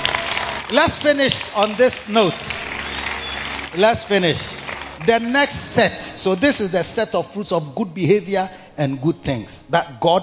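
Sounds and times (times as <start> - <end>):
audience clapping: 0.0 - 7.2
speech: 0.7 - 2.7, 3.7 - 10.2.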